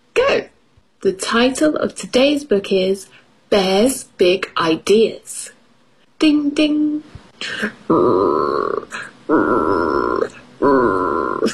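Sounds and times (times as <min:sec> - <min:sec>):
speech: 0:00.2 - 0:05.6, 0:06.2 - 0:10.0
voice imitating stomach growling: 0:07.4 - 0:11.5.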